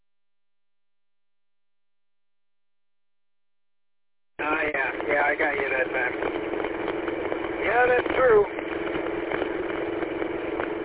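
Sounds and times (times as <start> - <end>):
pickup truck engine running: 4.4 - 10.8
speech: 7.8 - 8.6.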